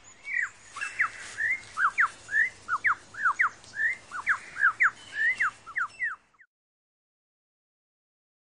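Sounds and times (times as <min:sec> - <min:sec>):
lyrebird calling: 0:00.1 - 0:06.5.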